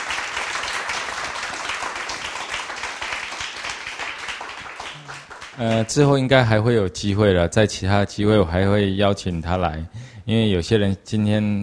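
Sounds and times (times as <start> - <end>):
audience applause: 0.0 - 6.0
speech: 5.6 - 11.6.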